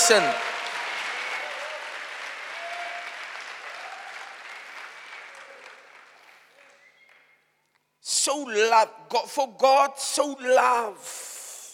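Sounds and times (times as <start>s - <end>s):
audience clapping: 0.0s - 7.8s
speech: 0.1s - 0.5s, 8.3s - 11.2s.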